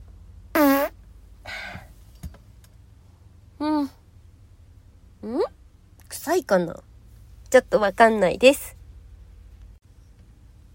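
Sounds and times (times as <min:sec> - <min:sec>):
short buzzy farts: 0:00.5 - 0:01.0
speech: 0:06.3 - 0:06.9, 0:07.5 - 0:08.8.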